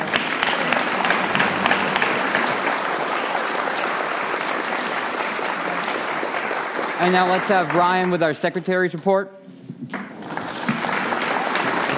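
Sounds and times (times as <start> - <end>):
audience applause: 0.0 - 8.6, 10.2 - 11.9
speech: 7.0 - 10.0.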